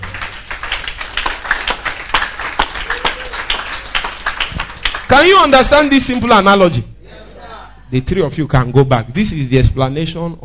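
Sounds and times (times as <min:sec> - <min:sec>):
group clapping hands: 0:00.0 - 0:05.9
speech: 0:05.1 - 0:06.9, 0:07.9 - 0:10.4.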